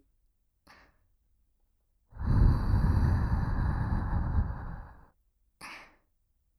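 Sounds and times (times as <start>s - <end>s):
ASMR blowing into ear: 2.2s - 5.0s.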